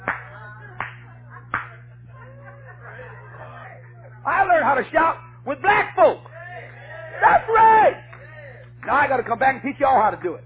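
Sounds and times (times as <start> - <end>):
hand claps in demonstration: 0.0 - 1.9, 6.2 - 9.5, 10.1 - 10.4
low steady hum: 0.0 - 10.4
soft chuckling and laughter: 0.5 - 4.2
speech: 4.7 - 6.2, 8.9 - 10.4.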